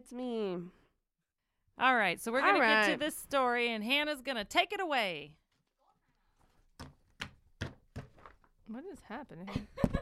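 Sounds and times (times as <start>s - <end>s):
speech: 0.0s - 0.8s, 1.8s - 5.4s, 8.7s - 10.0s
stack of paper straightened against a desk: 6.8s - 8.5s.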